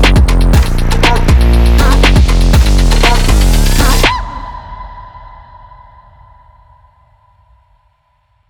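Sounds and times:
stylish sport bass line: 0.0 - 4.2.

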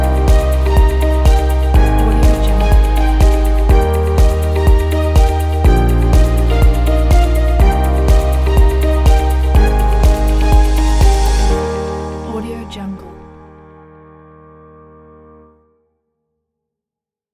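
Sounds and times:
upbeat background music: 0.0 - 13.3.

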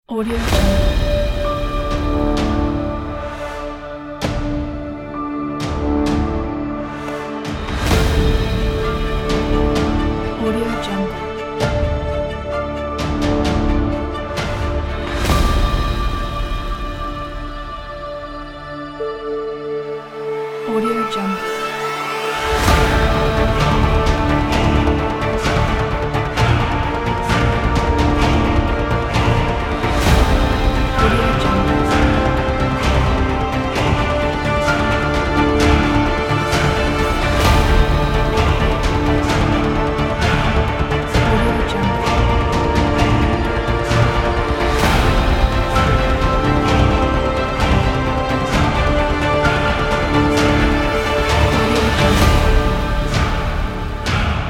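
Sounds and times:
epic hybrid trailer music: 0.0 - 54.4.

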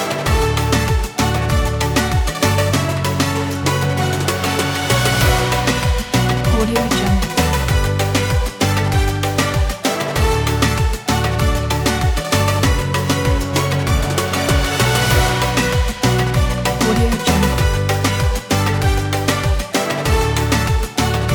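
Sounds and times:
emotional latin dance pop: 0.0 - 21.3.

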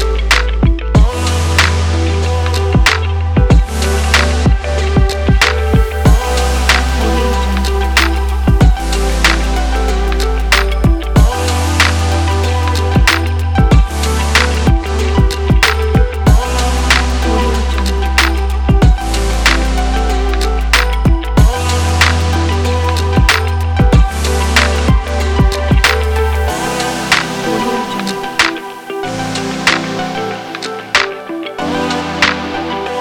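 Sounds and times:
atmospheric hip hop music: 0.0 - 32.9.

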